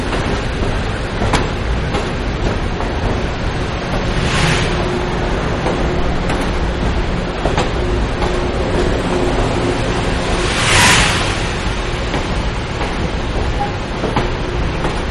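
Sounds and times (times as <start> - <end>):
diesel commuter train departing: 0.0 - 15.0.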